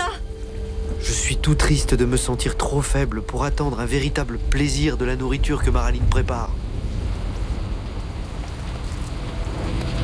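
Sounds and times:
rain falling: 0:00.0 - 0:10.0
speech: 0:01.3 - 0:06.7.

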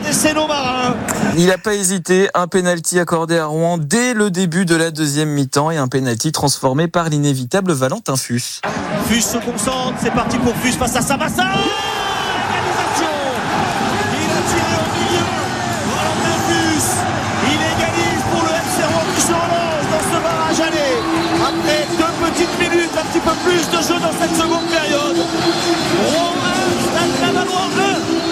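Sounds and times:
speech: 0:00.1 - 0:12.2
stadium crowd roaring after a penalty goal: 0:08.6 - 0:28.3.

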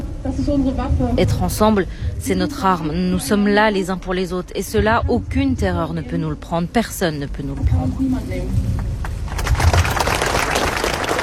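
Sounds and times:
speech: 0:00.3 - 0:08.8
crowd applause at a rally: 0:09.0 - 0:11.2.

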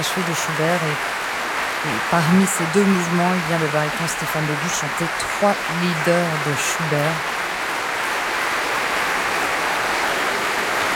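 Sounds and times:
concert audience applause: 0:00.0 - 0:10.9
speech: 0:00.1 - 0:07.4.

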